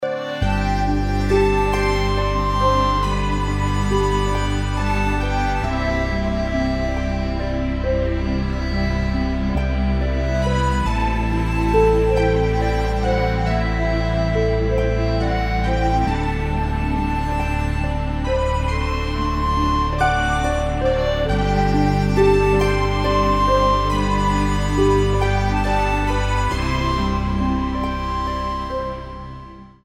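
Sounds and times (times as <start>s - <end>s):
Celtic fairy lullaby music: 0.0s - 29.8s.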